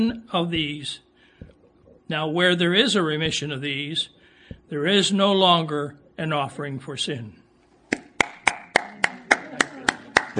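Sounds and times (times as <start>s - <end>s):
speech: 0.0s - 1.1s, 2.1s - 7.4s
audience clapping in unison to applaud the Lord: 7.9s - 10.3s.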